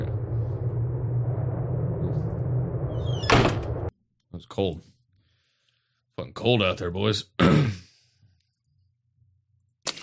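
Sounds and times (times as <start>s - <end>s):
steady low rumble: 0.0s - 3.9s
door pulled shut on a cold day: 3.0s - 3.9s
speech: 4.4s - 4.9s, 6.2s - 7.8s.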